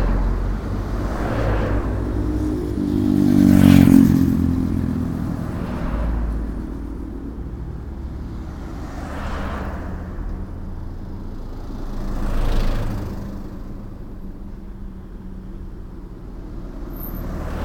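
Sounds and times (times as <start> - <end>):
town road traffic: 0.0 - 17.6.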